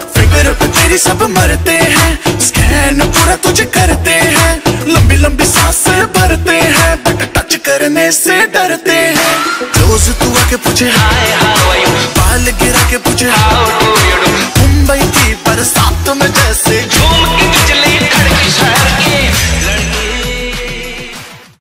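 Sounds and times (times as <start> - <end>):
rap ringtone: 0.2 - 21.0.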